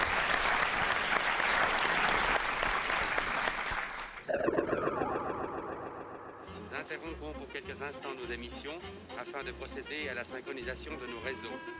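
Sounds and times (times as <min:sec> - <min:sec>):
audience applause: 0:00.0 - 0:06.6
speech: 0:07.5 - 0:11.7.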